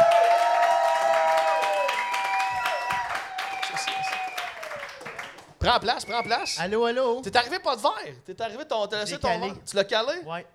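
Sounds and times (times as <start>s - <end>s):
audience clapping and cheering to welcome a podcast guest on stage: 0.0s - 6.4s
speech: 5.6s - 10.5s.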